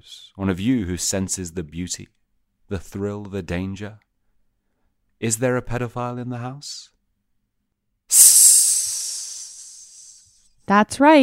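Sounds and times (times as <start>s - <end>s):
speech: 0.0s - 4.1s, 5.2s - 7.0s, 8.1s - 8.6s, 10.7s - 11.2s
loud bright hiss: 8.1s - 10.4s.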